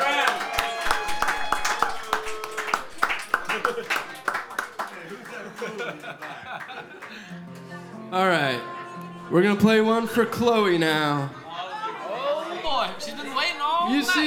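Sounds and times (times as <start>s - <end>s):
audience applause: 0.0s - 7.9s, 12.3s - 14.2s
laughter: 0.0s - 14.2s
speech: 9.3s - 11.4s, 13.9s - 14.2s.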